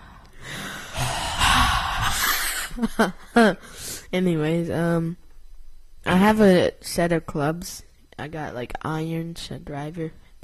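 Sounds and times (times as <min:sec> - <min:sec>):
audible breathing into a microphone: 0:00.0 - 0:02.8
speech: 0:02.8 - 0:05.2, 0:06.0 - 0:10.4.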